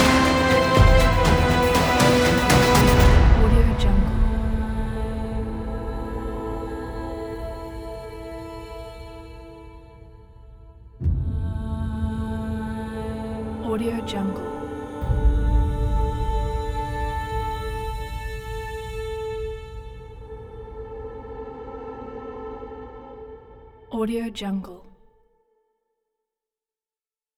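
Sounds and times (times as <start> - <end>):
cinematic trailer music: 0.0 - 21.4.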